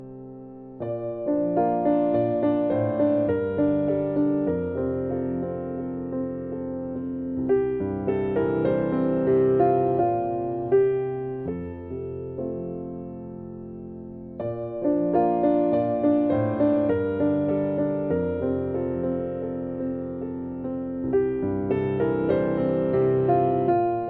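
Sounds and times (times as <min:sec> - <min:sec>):
piano instrumental: 0:00.0 - 0:24.0.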